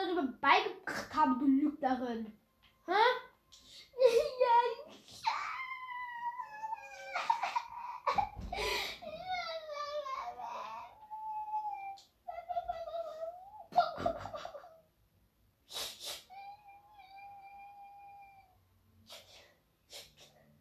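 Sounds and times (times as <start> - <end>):
speech: 0.2 - 3.2
crying: 5.2 - 14.8, 16.3 - 18.6.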